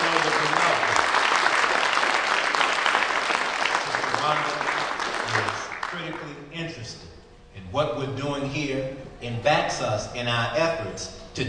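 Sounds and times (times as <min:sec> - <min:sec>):
audience applause: 0:00.0 - 0:06.3
speech: 0:07.7 - 0:11.4.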